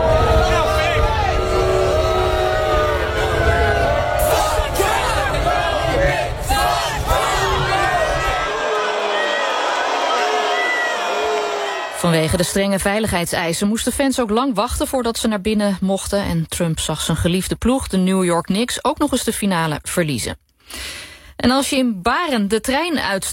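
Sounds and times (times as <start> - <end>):
crowd booing at basketball final: 0.0 - 12.7
speech: 12.2 - 23.3.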